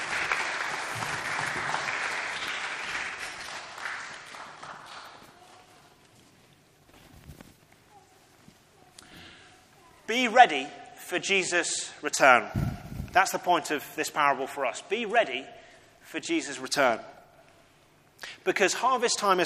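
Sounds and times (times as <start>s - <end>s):
crowd applause: 0.0s - 5.3s
speech: 10.1s - 12.6s, 13.2s - 17.2s, 18.4s - 19.4s.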